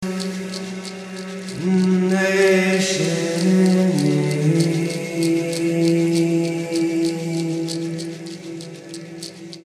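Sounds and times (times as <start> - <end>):
a cappella singing: 0.0 - 9.3.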